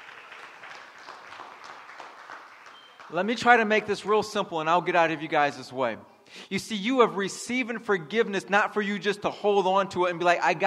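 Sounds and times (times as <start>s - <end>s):
audience applause: 0.0s - 3.2s
speech: 3.1s - 10.6s.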